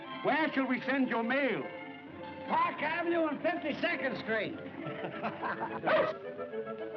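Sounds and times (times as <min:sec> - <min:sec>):
speech: 0:00.2 - 0:01.8, 0:02.5 - 0:06.9
laughter: 0:04.7 - 0:06.2
dog barking and yipping: 0:05.9 - 0:06.2.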